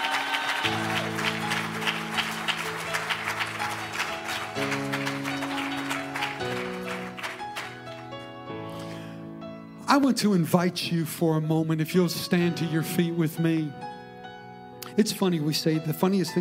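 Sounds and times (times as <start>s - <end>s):
audience clapping hands in praise: 0.0s - 8.9s
speech: 10.0s - 13.9s, 15.0s - 16.3s.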